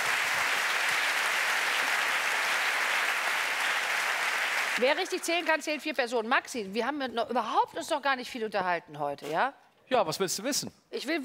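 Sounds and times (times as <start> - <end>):
applause: 0.0 - 6.0
speech: 4.8 - 11.2.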